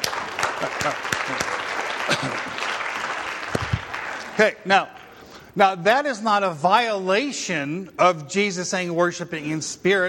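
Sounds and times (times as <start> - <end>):
audience clapping hands: 0.0 - 5.2
speech: 0.6 - 2.7, 4.4 - 5.0, 5.6 - 10.0.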